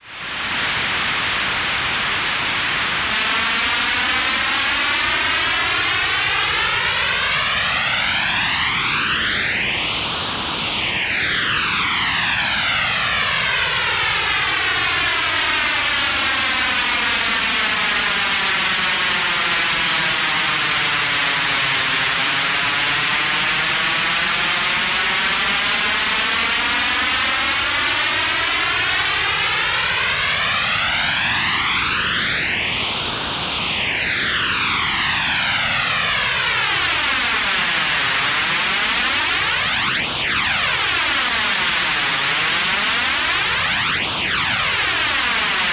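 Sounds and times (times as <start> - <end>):
noise: 0.0 - 45.7.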